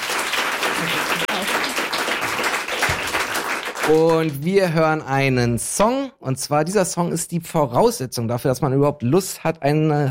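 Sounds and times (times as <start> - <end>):
audience applause: 0.0 - 4.5
speech: 3.9 - 10.0.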